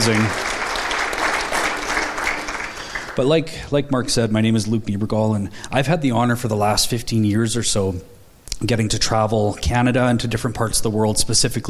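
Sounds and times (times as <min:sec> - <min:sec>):
speech: 0:00.0 - 0:00.5, 0:03.2 - 0:11.6
crowd clapping: 0:00.0 - 0:03.2.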